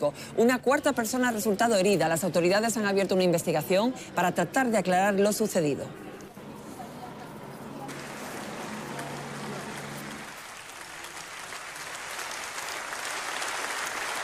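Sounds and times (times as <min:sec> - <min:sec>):
speech: 0:00.0 - 0:06.1
audience applause: 0:07.9 - 0:14.2.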